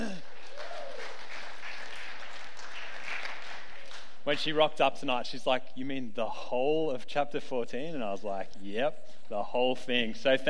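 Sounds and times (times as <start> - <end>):
audience clapping: 0.0 - 4.8
speech: 4.2 - 10.4.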